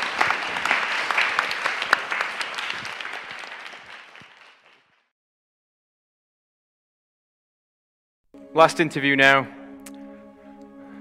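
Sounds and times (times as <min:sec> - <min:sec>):
audience applause: 0:00.0 - 0:05.1
speech: 0:08.6 - 0:09.6.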